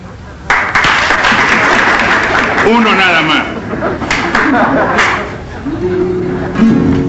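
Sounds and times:
applause: 0.5s - 5.3s
laughter: 1.3s - 7.0s
speech: 2.7s - 6.6s.

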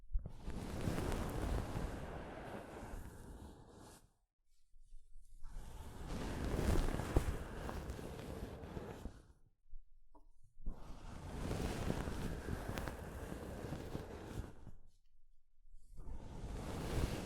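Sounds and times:
soft fabric brushing against a microphone: 0.4s - 4.2s, 4.9s - 9.3s, 10.7s - 15.0s, 16.0s - 17.2s.

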